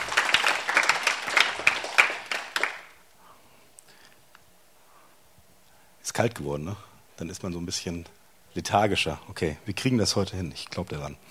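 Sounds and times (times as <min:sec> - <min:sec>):
audience applause: 0:00.0 - 0:03.0
speech: 0:06.1 - 0:11.2.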